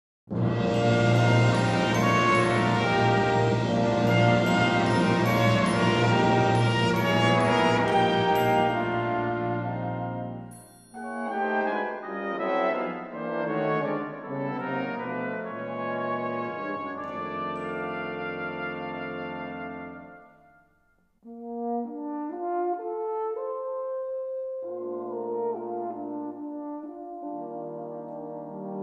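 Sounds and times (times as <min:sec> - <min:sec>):
brass instruments: 0:00.3 - 0:28.8.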